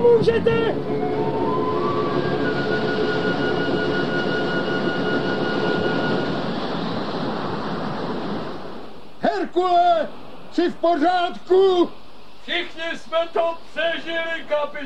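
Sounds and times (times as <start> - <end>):
big ocean wave crashing over a ship: 0.0 - 12.7
speech: 0.1 - 1.3, 9.4 - 14.8
faint whistling tones: 0.9 - 6.3.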